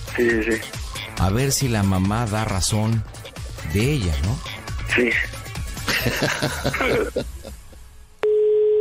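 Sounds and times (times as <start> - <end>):
speech: 0.2 - 5.4, 6.0 - 7.4
laughter: 5.9 - 7.8
telephone line tone after dialing a number: 8.2 - 8.7.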